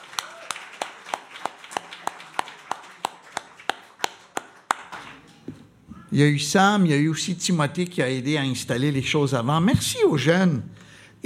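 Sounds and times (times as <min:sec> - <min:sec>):
audience applauding: 0:00.0 - 0:05.3
speech: 0:06.1 - 0:11.2.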